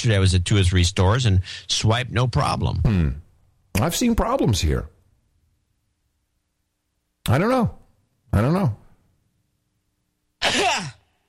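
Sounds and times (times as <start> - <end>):
speech: 0.0 - 3.2, 3.8 - 4.9, 7.3 - 8.8, 10.4 - 11.0
sneeze: 10.4 - 11.1.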